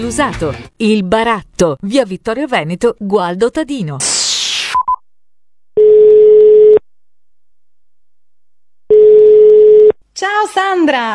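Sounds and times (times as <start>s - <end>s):
speech: 0.0s - 4.4s, 10.2s - 11.1s
telephone dialing beeps: 5.8s - 6.8s, 8.9s - 9.9s.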